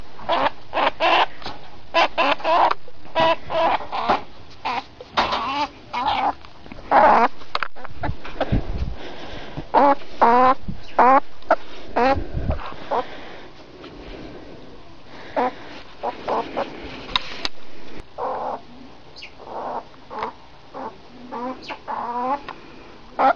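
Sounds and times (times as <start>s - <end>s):
ferret: 0.3s - 8.6s, 9.7s - 13.1s, 15.3s - 17.4s, 18.2s - 22.5s.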